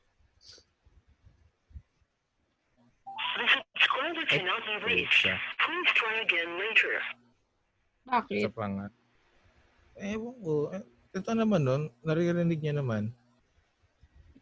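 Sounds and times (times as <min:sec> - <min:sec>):
tinny recorded message over the phone line: 0:03.1 - 0:07.1
speech: 0:04.3 - 0:07.2, 0:08.1 - 0:09.0, 0:10.0 - 0:13.2.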